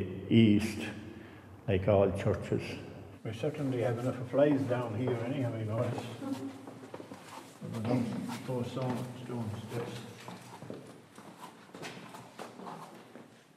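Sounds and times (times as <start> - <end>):
speech: 0.0 - 1.0, 1.7 - 6.6, 7.7 - 10.1
footsteps coming down spiral stairs into a church basement: 4.4 - 13.4.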